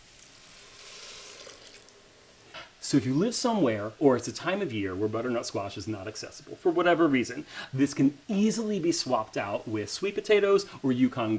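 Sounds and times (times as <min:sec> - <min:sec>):
broth poured into a pot of lentils: 0:00.0 - 0:02.4
speech: 0:02.9 - 0:11.3.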